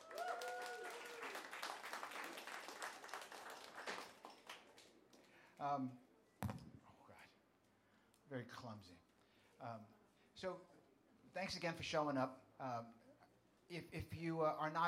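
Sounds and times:
audience applause: 0.0 - 4.8
speech: 5.6 - 6.1, 8.3 - 13.0, 13.7 - 14.8.

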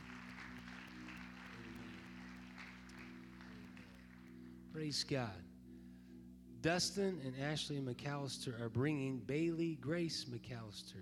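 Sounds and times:
audience clapping: 0.0 - 4.6
speech: 4.8 - 5.5, 6.6 - 11.0.

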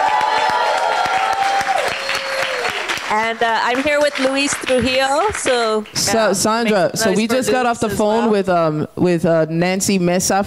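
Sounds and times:
crowd applauding and cheering: 0.0 - 6.9
speech: 3.1 - 10.4.

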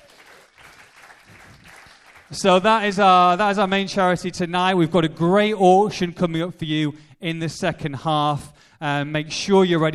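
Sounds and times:
audience applause: 0.0 - 2.4
speech: 2.3 - 9.9.

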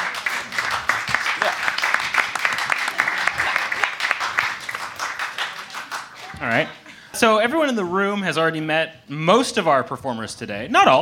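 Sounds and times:
audience clapping: 0.0 - 6.8
speech: 6.4 - 11.0.

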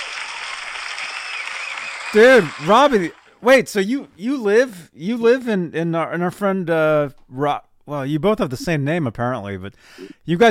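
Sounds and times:
applause: 0.0 - 3.4
speech: 2.1 - 10.4.

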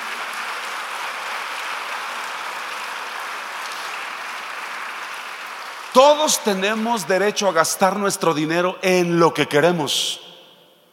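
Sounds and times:
audience applause: 0.0 - 7.2
speech: 6.0 - 10.2.

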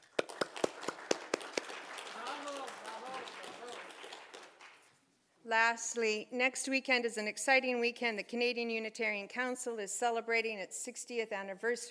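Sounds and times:
applause: 0.0 - 5.0
speech: 5.5 - 11.8.

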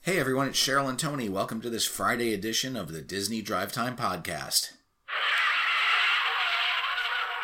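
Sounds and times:
speech: 0.1 - 5.4
car tire squeal: 5.1 - 7.4.

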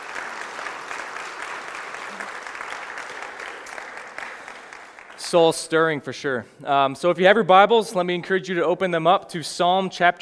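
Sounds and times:
church congregation applauding the worship team: 0.0 - 5.9
speech: 5.3 - 10.2.

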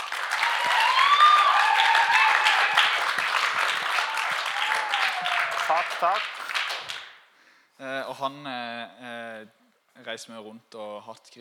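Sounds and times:
audience applause: 0.0 - 7.1
speech: 5.8 - 6.4, 7.8 - 11.3.

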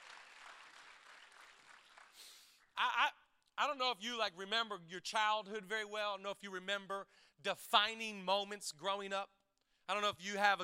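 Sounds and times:
crowd clapping together: 0.0 - 2.8
speech: 2.8 - 10.6.

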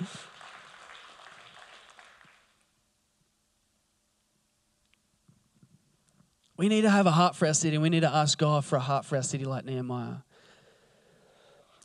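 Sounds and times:
audience clapping: 0.0 - 2.7
speech: 6.6 - 10.3.

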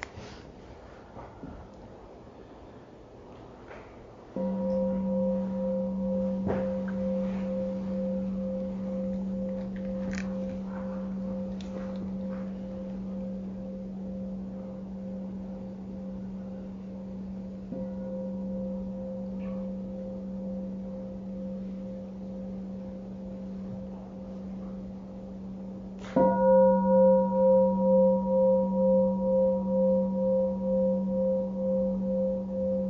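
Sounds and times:
meditation bell ringing: 4.3 - 32.8.

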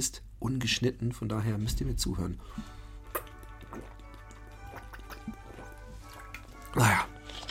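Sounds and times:
speech: 0.0 - 2.8
quiet music: 1.0 - 7.4
person sipping tea: 2.4 - 7.4.

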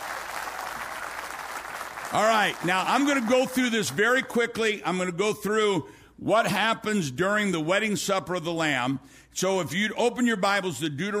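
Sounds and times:
audience clapping: 0.0 - 4.3
speech: 2.1 - 11.1.

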